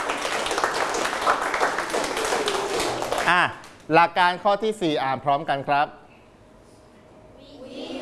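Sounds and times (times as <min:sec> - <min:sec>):
hand clapping: 0:00.0 - 0:03.9
speech: 0:03.3 - 0:06.0.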